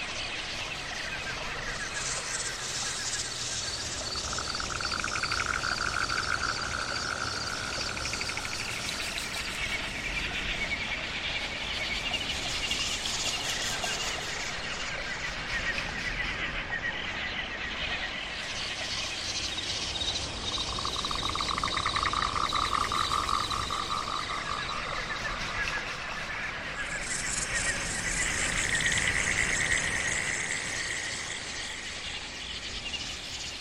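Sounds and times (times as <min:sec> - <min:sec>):
wild forest ambience: 0:00.0 - 0:33.6.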